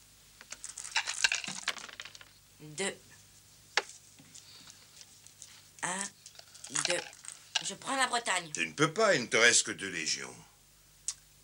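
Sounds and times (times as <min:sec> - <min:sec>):
dice rolled in a board game about conquering Gaul: 0:00.5 - 0:02.4, 0:06.3 - 0:07.8
speech: 0:02.6 - 0:03.1, 0:05.8 - 0:10.5.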